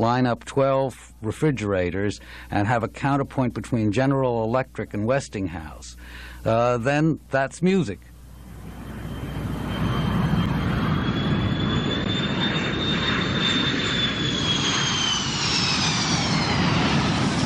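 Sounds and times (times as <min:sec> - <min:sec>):
speech: 0:00.0 - 0:08.1
airplane flying overhead: 0:02.2 - 0:02.8, 0:08.0 - 0:17.4.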